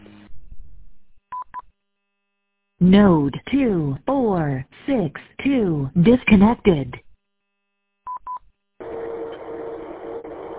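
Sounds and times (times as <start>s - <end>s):
speech: 2.8s - 7.0s
DTMF telephone tone beeps over a radio repeater: 8.1s - 8.4s.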